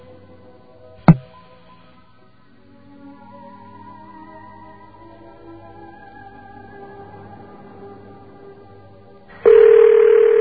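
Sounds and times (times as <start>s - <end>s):
telephone dial tone: 9.5s - 10.3s.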